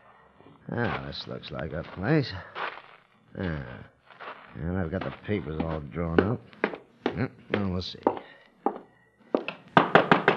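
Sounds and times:
speech: 0.7 - 2.7, 3.3 - 3.9, 4.5 - 8.2
knocking on a door: 9.8 - 10.3.

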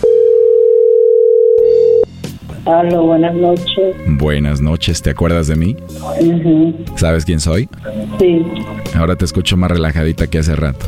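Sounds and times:
steady single-pitch telephone tone: 0.0 - 2.1
speech: 2.6 - 10.8.

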